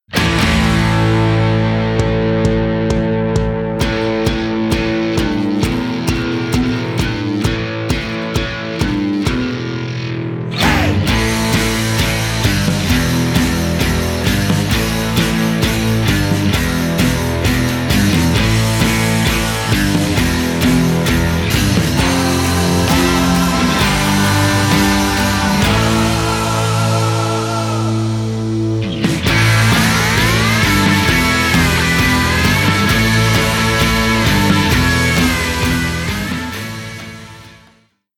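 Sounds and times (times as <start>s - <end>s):
rock music: 0.0s - 37.8s.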